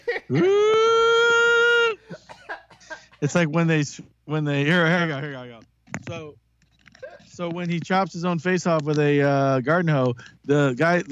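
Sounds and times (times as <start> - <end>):
speech: 0.3 - 0.6, 3.2 - 6.4, 7.4 - 11.1
shrill scream: 0.3 - 2.0.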